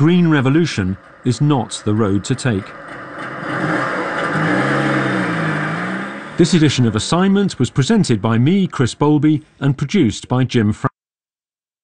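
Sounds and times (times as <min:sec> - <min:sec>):
speech: 0:00.0 - 0:03.7, 0:06.4 - 0:10.9
petrol car engine revving: 0:00.0 - 0:08.2.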